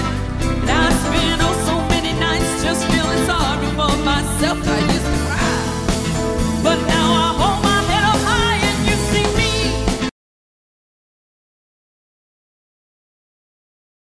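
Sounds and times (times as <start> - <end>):
variety band playing: 0.0 - 10.1.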